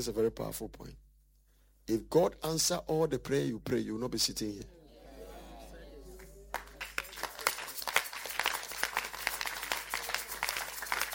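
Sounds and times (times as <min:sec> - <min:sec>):
speech: 0:00.0 - 0:01.1, 0:01.9 - 0:04.8
audience clapping: 0:06.1 - 0:11.1.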